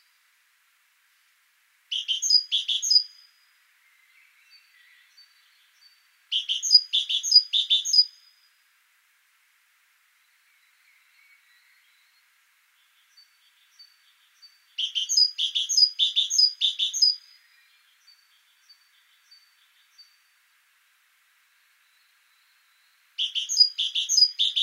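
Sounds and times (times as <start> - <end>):
great tit calls: 1.9 - 3.2, 5.2 - 8.2, 12.8 - 20.2, 23.2 - 24.6.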